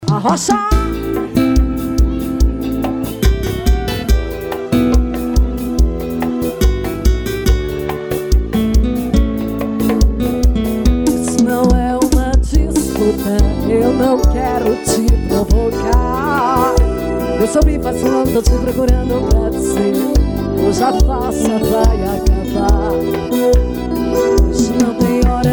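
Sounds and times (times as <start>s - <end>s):
live forro music: 0.0s - 25.5s.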